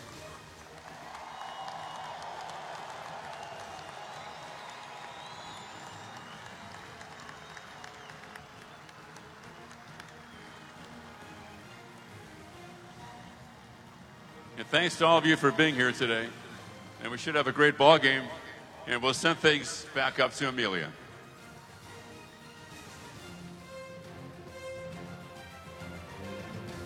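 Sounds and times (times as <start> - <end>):
audience applause: 0.0 - 16.6
speech: 14.6 - 16.4, 17.0 - 21.0.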